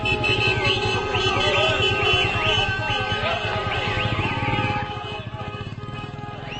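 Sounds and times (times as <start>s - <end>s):
crowds celebrating in Gaza City streets: 0.0s - 6.5s
massive traffic in Gaza City: 0.0s - 6.5s.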